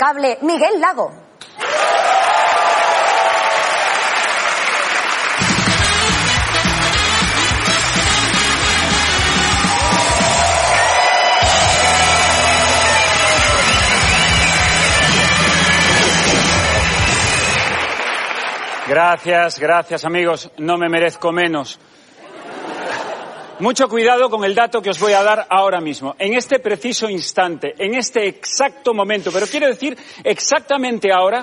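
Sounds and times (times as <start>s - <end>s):
speech: 0.0s - 1.4s, 18.9s - 22.0s, 23.6s - 31.4s
audience applause: 1.6s - 19.3s
laughter: 22.2s - 23.8s.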